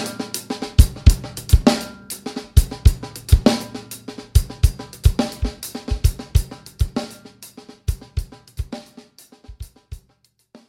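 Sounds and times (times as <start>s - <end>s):
cavaquinho playing blues: 0.0s - 7.1s.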